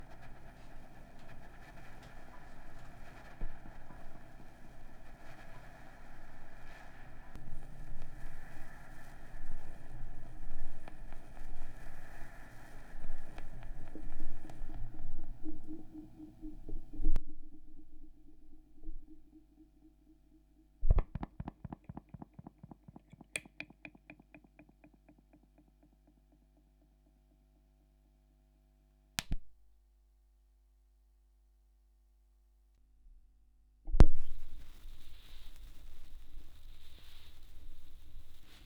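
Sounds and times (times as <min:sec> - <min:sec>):
vinyl record noise: 0:00.0 - 0:25.0, 0:34.0 - 0:38.6.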